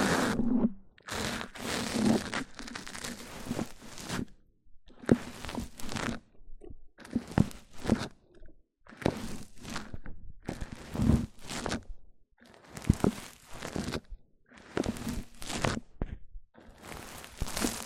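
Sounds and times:
scratchy crinkly rubbing on a microphone: 0.0s - 4.4s, 5.0s - 6.2s, 7.2s - 8.2s, 9.0s - 11.9s, 12.6s - 16.0s, 16.7s - 17.8s.

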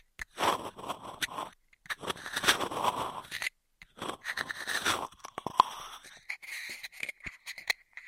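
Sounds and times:
straw crinkling and rubbing: 0.0s - 7.6s.

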